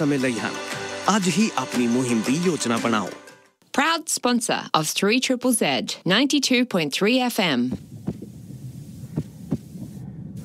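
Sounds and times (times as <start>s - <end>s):
speech: 0.0s - 3.2s, 4.0s - 7.9s
bus driver's heartbeat thumps after being yelled at: 7.7s - 10.4s.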